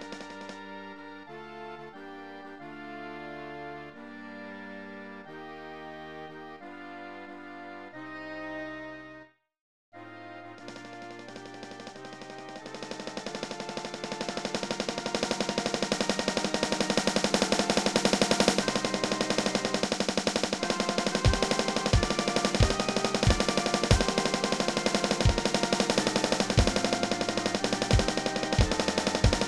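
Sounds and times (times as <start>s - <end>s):
percussion: 10.8s - 29.4s.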